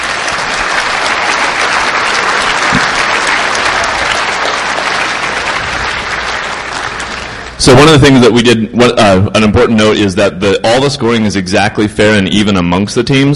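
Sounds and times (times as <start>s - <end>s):
audience applause: 0.0s - 7.6s
speech: 7.6s - 13.3s.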